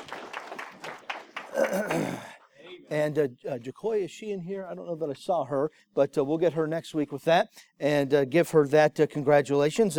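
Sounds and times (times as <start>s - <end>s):
applause for program graduates at a congregational gathering: 0.0s - 2.4s
speech: 2.9s - 9.9s.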